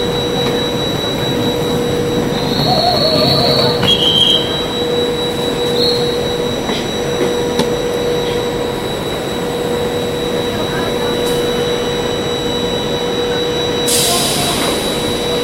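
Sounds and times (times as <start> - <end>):
constant whining tone: 0.0 - 15.4
high squeals: 0.0 - 15.4
railroad rumble: 0.0 - 15.4
loud bright hiss: 13.9 - 15.4.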